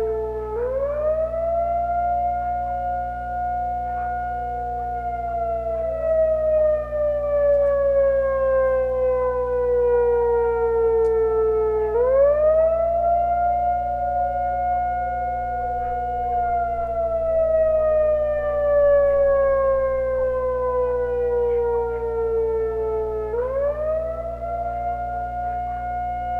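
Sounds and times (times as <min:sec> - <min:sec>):
Whelen siren test in Aurora CO: 0:00.0 - 0:26.3.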